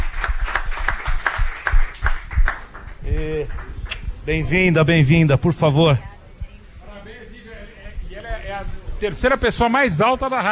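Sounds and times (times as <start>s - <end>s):
people clapping: 0.0s - 4.6s
speech: 3.2s - 6.1s, 9.0s - 10.5s.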